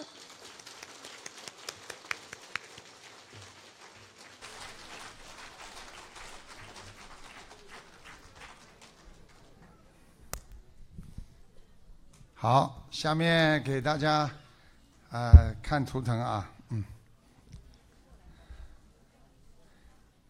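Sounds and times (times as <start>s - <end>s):
audience applause: 0.0s - 9.9s
speech: 12.4s - 14.4s, 15.1s - 16.9s.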